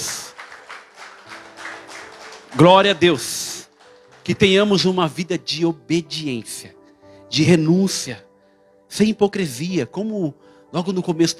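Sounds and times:
audience applauding: 0:00.0 - 0:04.7
speech: 0:02.5 - 0:03.4, 0:04.2 - 0:08.3, 0:08.9 - 0:11.3.

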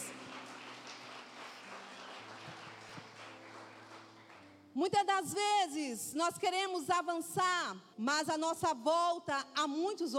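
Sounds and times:
audience applause: 0:00.0 - 0:04.5
speech: 0:04.8 - 0:10.1.

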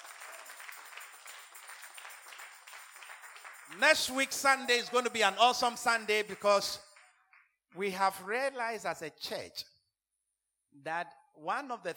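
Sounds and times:
audience clapping: 0:00.0 - 0:07.9
speech: 0:03.7 - 0:06.9, 0:07.8 - 0:09.7, 0:10.8 - 0:11.9.

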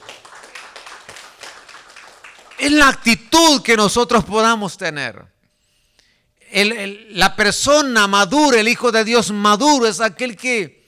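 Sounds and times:
crowd applause: 0:00.0 - 0:02.6
speech: 0:02.6 - 0:05.3, 0:06.5 - 0:10.8.

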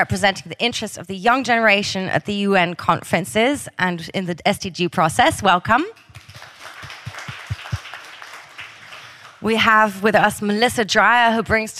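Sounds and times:
speech: 0:00.0 - 0:06.0, 0:09.4 - 0:11.7
audience applause for panelist: 0:06.1 - 0:09.5.

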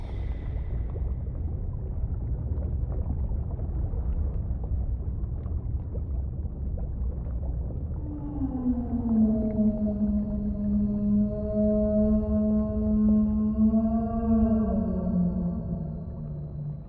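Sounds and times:
low watery rumble and hiss: 0:00.0 - 0:16.8
whale call: 0:08.0 - 0:16.8.

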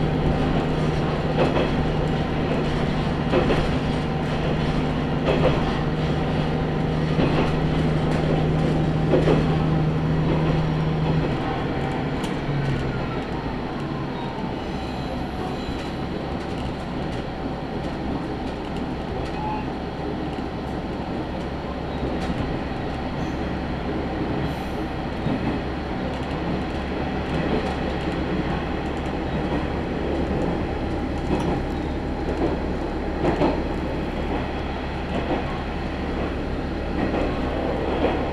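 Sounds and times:
Tenryu Hamanako Railway railcar running on the track: 0:00.0 - 0:38.3.

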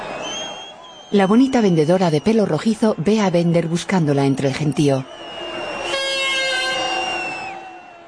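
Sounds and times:
speech: 0:01.1 - 0:05.4
horn blown in the stands at a sports event: 0:05.8 - 0:07.6.

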